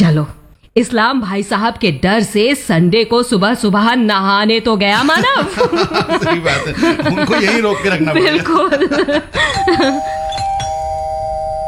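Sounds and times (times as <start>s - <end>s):
speech: 0.1s - 10.2s
laughter: 4.9s - 10.4s
doorbell ringing: 9.5s - 11.6s.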